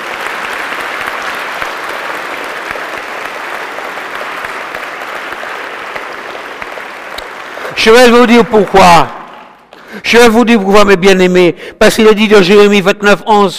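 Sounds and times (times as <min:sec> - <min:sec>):
audience applause: 0:00.0 - 0:09.9
speech: 0:07.8 - 0:09.2, 0:10.0 - 0:13.5.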